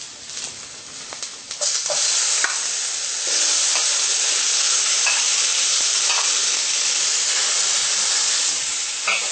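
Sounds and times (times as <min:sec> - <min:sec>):
tomatoes sizzling as stirred into frying onions in a pan: 0:00.0 - 0:09.3.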